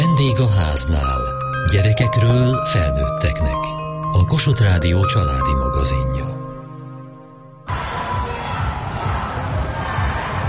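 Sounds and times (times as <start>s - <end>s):
brief tonal musical note: 0.0s - 7.7s
speech: 0.2s - 6.4s
crowd roaring and cheering: 7.7s - 10.4s.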